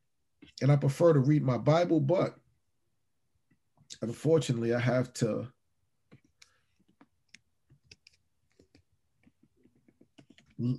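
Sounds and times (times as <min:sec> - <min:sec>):
speech: 0:00.5 - 0:02.4, 0:04.0 - 0:05.6, 0:10.6 - 0:10.7
keyboard typing: 0:06.1 - 0:10.6.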